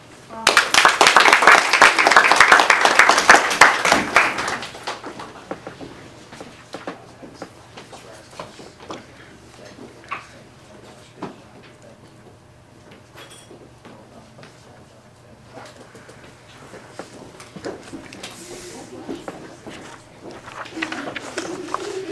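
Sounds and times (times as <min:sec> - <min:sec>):
audience applause for volunteers at Madison Plains Local Schools: 0:00.4 - 0:05.1.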